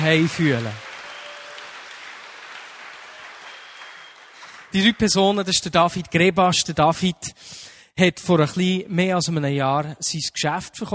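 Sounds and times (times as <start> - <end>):
speech: 0.0 - 0.8, 4.7 - 10.9
audience applause: 0.0 - 5.2.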